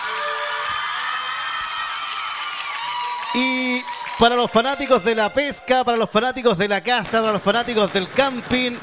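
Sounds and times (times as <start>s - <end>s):
audience applause: 0.0s - 5.1s
speech: 3.3s - 8.8s.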